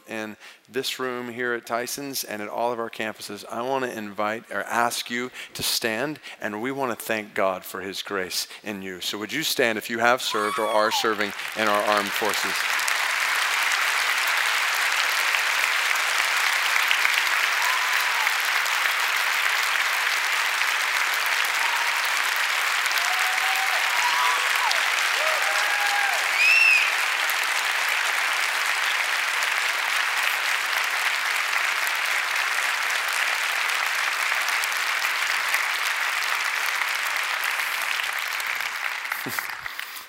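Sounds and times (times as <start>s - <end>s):
speech: 0.2s - 12.8s
audience applauding: 10.3s - 40.0s
faint whistles and cheers: 17.5s - 18.3s, 23.0s - 27.1s.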